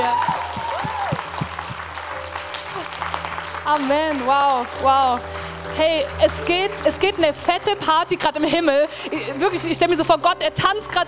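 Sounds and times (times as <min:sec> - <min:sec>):
faint whoops and voices: 0:00.0 - 0:01.5
audience applauding: 0:00.0 - 0:11.0
speech: 0:03.7 - 0:11.0.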